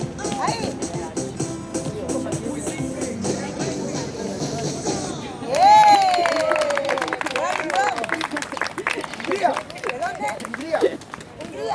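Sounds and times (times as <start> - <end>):
dance music: 0.0 - 5.8
laughter: 5.0 - 11.6.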